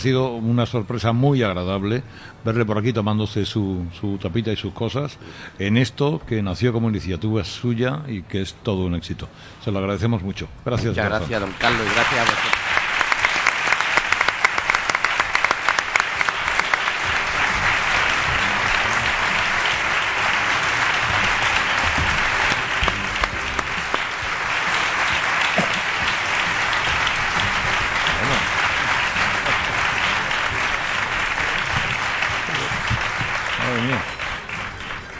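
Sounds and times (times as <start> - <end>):
speech: 0.0 - 12.7
audience ovation: 11.3 - 35.1.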